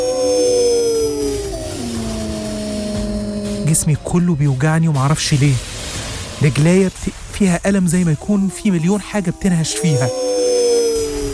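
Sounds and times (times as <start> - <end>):
wolves or dogs howling: 0.0 - 4.6, 7.7 - 11.3
low rumbling background: 0.0 - 11.3
speech: 3.7 - 5.7, 6.4 - 10.3.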